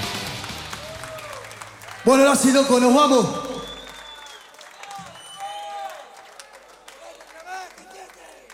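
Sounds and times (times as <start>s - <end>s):
audience applause: 0.0s - 8.5s
voices cheering and calling out: 0.5s - 8.5s
speech: 2.0s - 3.4s
whoops or whistles: 3.4s - 6.0s.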